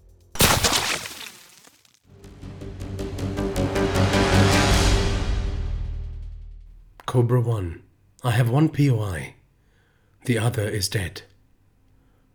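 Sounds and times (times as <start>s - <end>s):
music: 0.0s - 0.4s, 2.1s - 6.8s
rifle shot fired during an indoor fight: 0.4s - 1.1s
speech: 7.1s - 9.4s, 10.3s - 11.3s.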